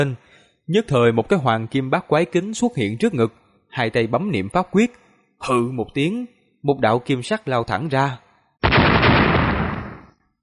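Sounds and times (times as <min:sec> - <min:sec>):
speech: 0:00.0 - 0:08.2
loud explosion sound effect: 0:08.6 - 0:10.1.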